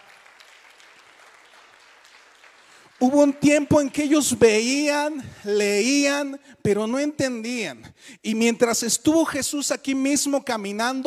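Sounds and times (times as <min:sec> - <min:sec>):
audience applauding: 0:00.0 - 0:03.9
speech: 0:03.0 - 0:11.0.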